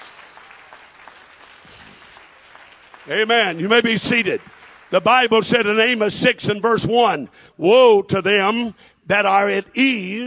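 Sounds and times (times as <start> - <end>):
congregation clapping hands: 0.0 - 6.3
speech: 3.1 - 10.2.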